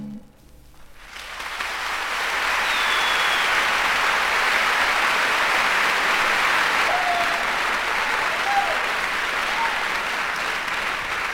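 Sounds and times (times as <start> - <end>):
crowd applause: 1.0 - 11.3
faint whistles: 2.7 - 3.7.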